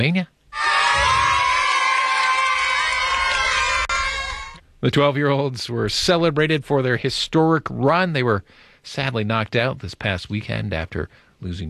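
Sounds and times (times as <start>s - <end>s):
speech: 0.0s - 0.4s, 4.8s - 11.6s
children whooping: 0.6s - 4.6s
crowd of fans cheering and shouting: 0.6s - 4.6s.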